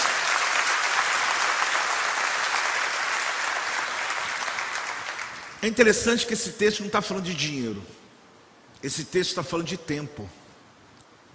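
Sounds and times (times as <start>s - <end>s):
audience clapping: 0.0s - 5.7s
speech: 5.6s - 8.0s, 8.8s - 10.4s.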